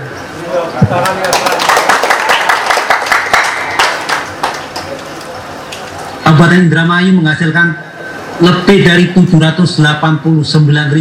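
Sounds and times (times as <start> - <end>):
speech: 0.6 - 1.5, 6.2 - 10.9
audience applause: 0.9 - 5.1.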